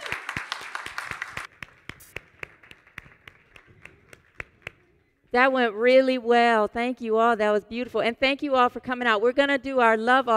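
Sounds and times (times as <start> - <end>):
audience clapping: 0.0 - 5.0
speech: 5.3 - 10.3.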